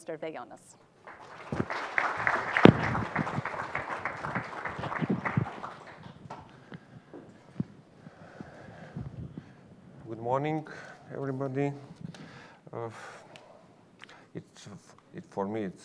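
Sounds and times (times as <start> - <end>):
speech: 0.1 - 1.6, 10.2 - 12.1, 12.7 - 13.2, 14.4 - 15.8
audience applause welcoming a speaker: 1.0 - 6.5.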